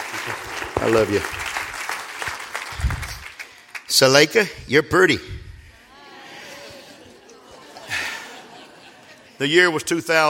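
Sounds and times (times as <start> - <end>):
audience hand clapping: 0.0 - 4.2
speech: 0.1 - 1.5, 3.9 - 5.4, 9.4 - 10.2
laughter: 5.7 - 10.0.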